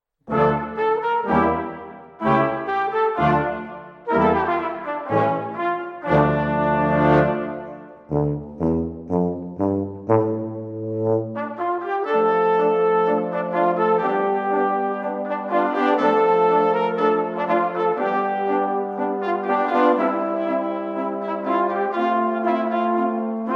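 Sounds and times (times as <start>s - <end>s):
brass band music in a minor key: 0.3s - 23.5s.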